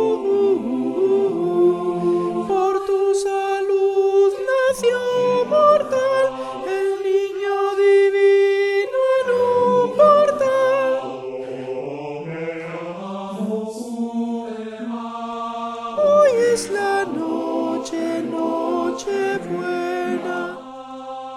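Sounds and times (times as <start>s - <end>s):
sopranos singing: 0.0s - 21.3s.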